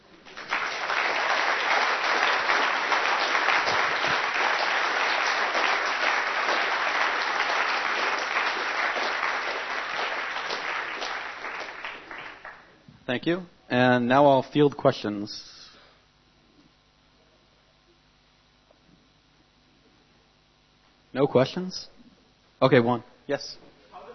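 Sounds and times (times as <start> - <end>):
crowd applause: 0.0 - 12.7
speech: 13.1 - 15.5, 21.2 - 22.0, 22.6 - 23.6.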